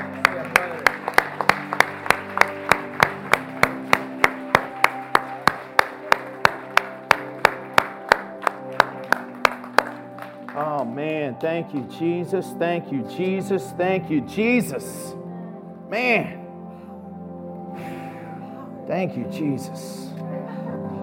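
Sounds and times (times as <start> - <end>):
audience clapping: 0.0 - 12.3
speech: 11.4 - 15.2, 15.9 - 16.4, 18.9 - 20.1.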